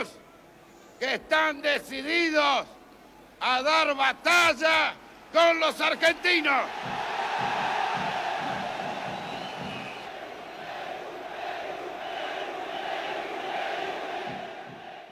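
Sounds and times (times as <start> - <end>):
speech: 0.0 - 0.2, 1.0 - 2.8, 3.4 - 7.5
crowd chanting in support: 6.0 - 15.1.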